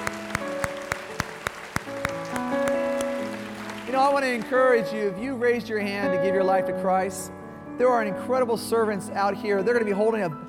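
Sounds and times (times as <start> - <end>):
audience applause: 0.0 - 4.6
speech: 4.0 - 10.4.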